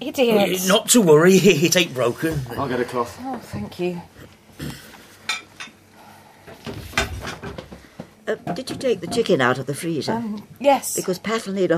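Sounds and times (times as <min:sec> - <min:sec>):
speech: 0:00.0 - 0:04.8, 0:08.3 - 0:11.7
plates and cutlery clattering as they are gathered up: 0:06.8 - 0:09.5.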